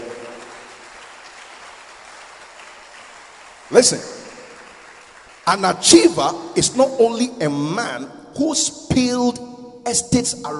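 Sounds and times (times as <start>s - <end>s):
audience applause: 0.0s - 6.3s
speech: 3.7s - 4.2s, 5.5s - 10.5s.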